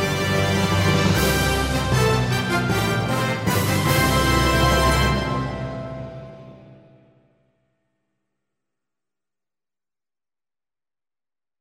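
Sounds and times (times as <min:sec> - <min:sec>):
opening brass music alone: 0:00.0 - 0:07.3.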